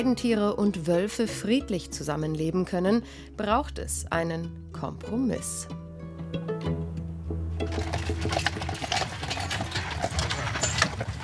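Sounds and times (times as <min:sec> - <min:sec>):
speech: 0:00.0 - 0:06.8, 0:07.7 - 0:08.6
horse hooves clip-clopping pulling a carriage: 0:07.6 - 0:11.2.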